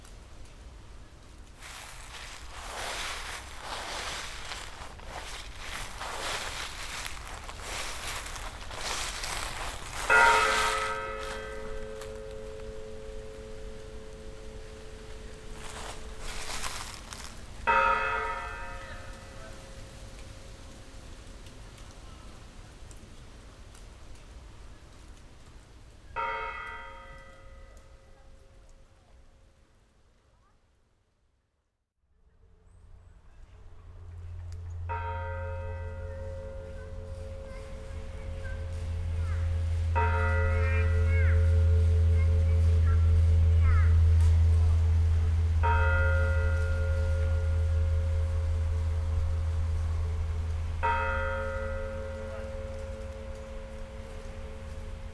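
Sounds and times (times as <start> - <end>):
bells ringing: 1.6 - 19.4, 34.8 - 55.1.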